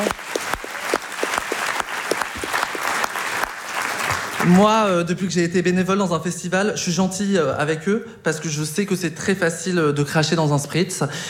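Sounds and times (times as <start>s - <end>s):
speech: 0.0s - 0.2s, 4.5s - 11.2s
audience applause for festival volunteers: 0.0s - 4.7s.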